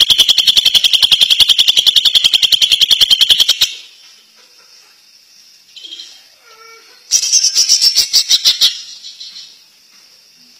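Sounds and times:
greater green leafbird singing: 0.0s - 4.3s, 5.7s - 9.7s.

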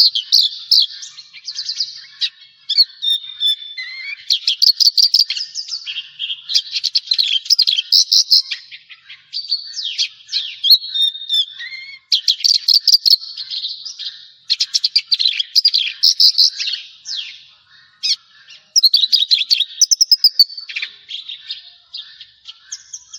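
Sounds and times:
Javan bush lark song: 0.0s - 23.1s.

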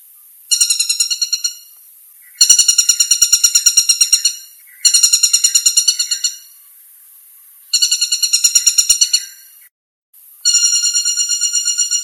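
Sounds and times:
flameback chattering trills: 0.5s - 6.6s, 7.7s - 9.6s, 10.4s - 12.0s.

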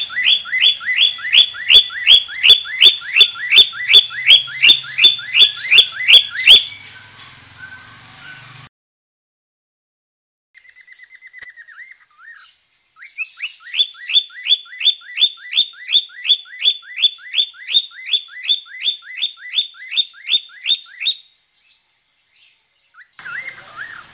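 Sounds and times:
budgerigar chirping with rising whistled notes: 0.0s - 8.6s, 10.6s - 21.3s.

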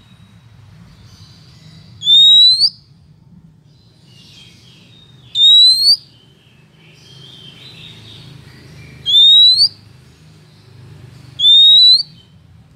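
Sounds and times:
female Oriental magpie-robin calling the male: 1.2s - 2.9s, 4.1s - 8.2s, 8.8s - 9.9s, 11.4s - 12.4s.

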